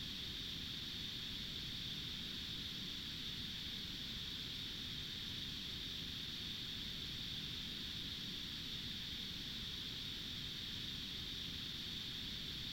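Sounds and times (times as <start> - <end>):
insects on a country road: 0.0 - 12.7.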